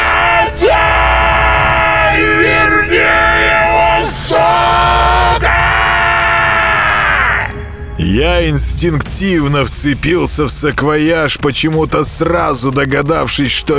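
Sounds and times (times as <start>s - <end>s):
piercing scream: 0.0s - 7.6s
speech: 8.0s - 13.7s.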